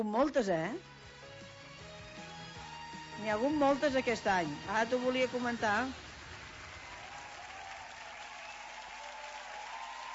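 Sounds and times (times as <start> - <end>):
speech: 0.0 - 0.9, 3.2 - 6.0
audience applause: 5.6 - 10.1.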